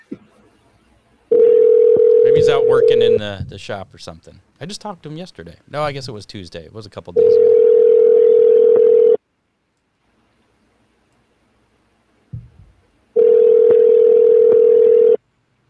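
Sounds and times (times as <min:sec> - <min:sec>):
steady low-pitched telephone tone: 0:01.3 - 0:03.2, 0:07.2 - 0:09.2, 0:13.2 - 0:15.2
speech: 0:02.5 - 0:07.8.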